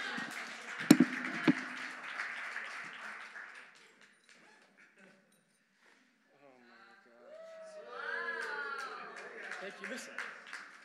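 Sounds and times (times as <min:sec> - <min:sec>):
audience clapping hands: 0:00.0 - 0:04.4, 0:08.4 - 0:10.8.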